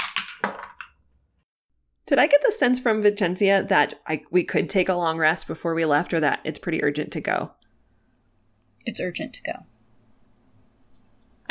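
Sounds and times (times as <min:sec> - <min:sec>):
dice rolling through a dice tower: 0:00.0 - 0:01.0
speech: 0:02.1 - 0:07.6, 0:08.8 - 0:09.7.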